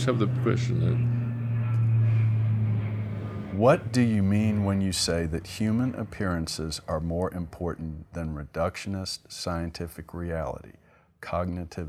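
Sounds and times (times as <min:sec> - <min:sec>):
speech: 0:00.0 - 0:01.2, 0:03.6 - 0:11.8
airplane passing overhead: 0:00.0 - 0:08.2.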